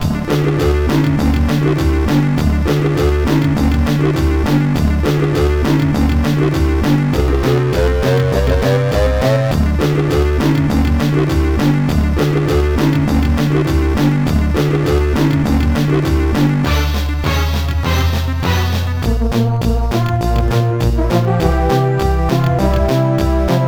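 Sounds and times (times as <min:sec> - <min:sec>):
cheerful game background music: 0:00.0 - 0:23.6.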